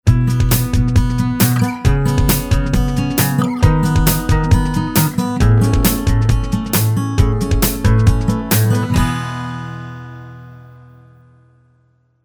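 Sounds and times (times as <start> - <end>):
short happy music bed: 0.1 - 9.6.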